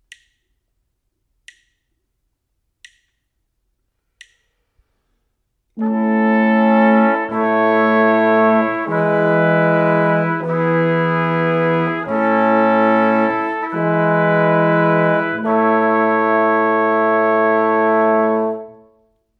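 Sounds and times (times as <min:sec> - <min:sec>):
brass quartet: 0:05.8 - 0:19.1.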